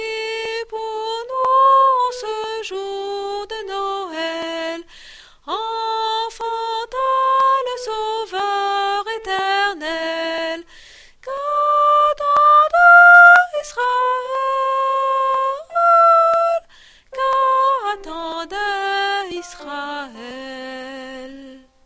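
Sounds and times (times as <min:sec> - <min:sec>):
soprano voices singing a Christmas carol: 0:00.0 - 0:04.9, 0:05.5 - 0:21.7.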